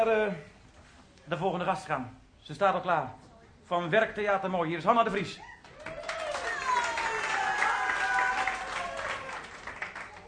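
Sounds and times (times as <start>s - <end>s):
speech: 0.0s - 0.5s, 1.3s - 5.5s
people cheering: 5.4s - 10.2s.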